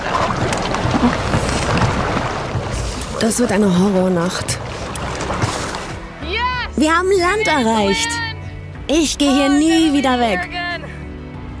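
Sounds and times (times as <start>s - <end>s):
rough sea waves against a boat: 0.0s - 6.1s
speech: 1.0s - 1.2s, 3.2s - 4.7s, 6.8s - 8.2s, 8.9s - 10.6s.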